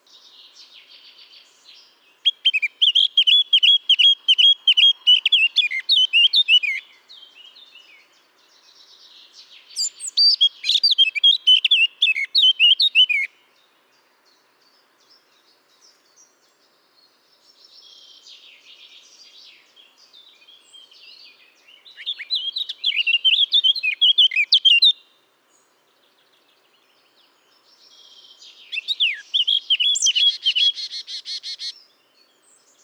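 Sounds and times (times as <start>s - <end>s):
Eurasian blackcap singing: 2.2s - 6.8s, 9.7s - 13.3s, 21.0s - 25.0s, 28.0s - 31.9s.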